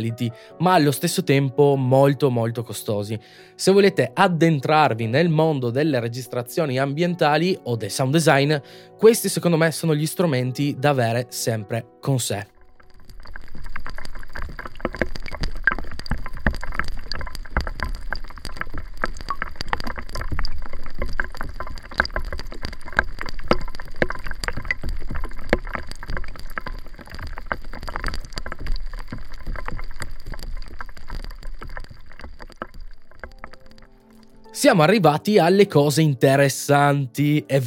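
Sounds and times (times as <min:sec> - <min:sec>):
speech: 0:00.0 - 0:12.6, 0:34.6 - 0:37.6
water drops recorded underwater: 0:12.6 - 0:34.6.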